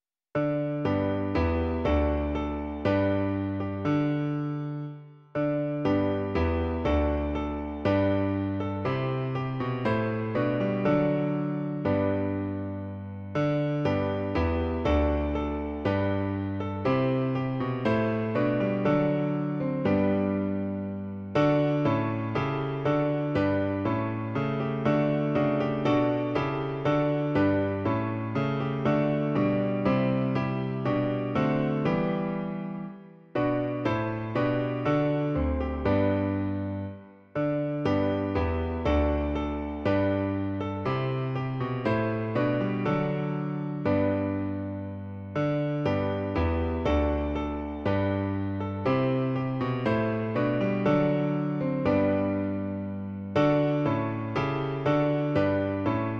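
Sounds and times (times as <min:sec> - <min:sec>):
piano version: 0:00.4 - 0:56.1.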